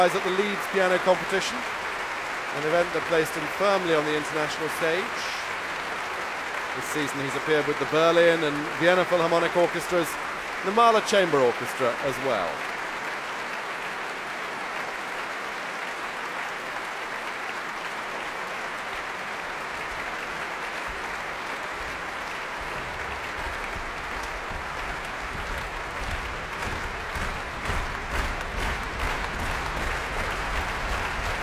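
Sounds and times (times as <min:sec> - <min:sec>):
speech: 0:00.0 - 0:01.8, 0:02.5 - 0:05.4, 0:06.8 - 0:12.7
large audience clapping: 0:00.0 - 0:31.4
low thumping foot stamps: 0:20.9 - 0:31.4.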